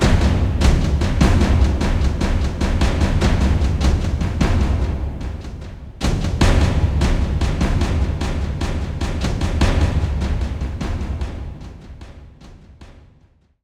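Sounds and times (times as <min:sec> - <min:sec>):
forest percussion: 0:00.0 - 0:13.3.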